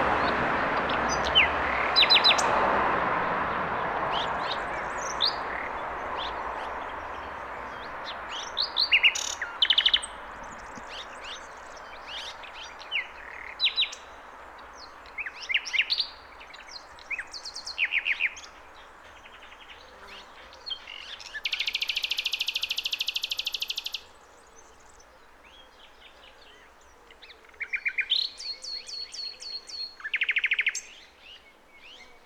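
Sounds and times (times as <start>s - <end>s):
common nightingale song: 0.2s - 2.6s, 3.6s - 32.2s.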